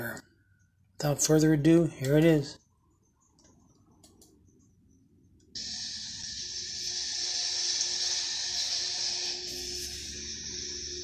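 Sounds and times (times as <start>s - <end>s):
speech: 1.0s - 2.6s
shower water running: 5.6s - 11.0s.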